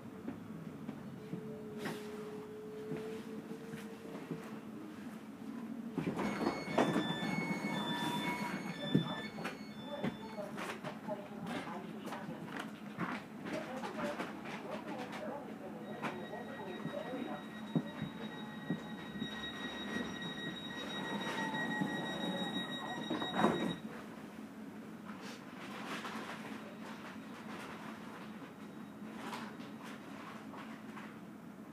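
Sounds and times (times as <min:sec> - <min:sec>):
S-Bahn train rumble: 0:00.1 - 0:31.6
short beeping tones: 0:06.2 - 0:10.4, 0:15.8 - 0:23.8.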